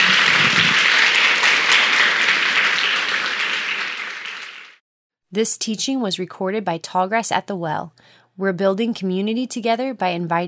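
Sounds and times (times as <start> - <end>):
audience applause: 0.0 - 4.8
speech: 5.3 - 10.4.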